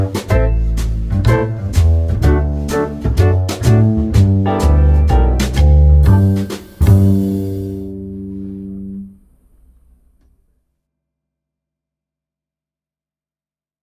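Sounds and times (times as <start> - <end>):
swing piano: 0.0 - 9.0.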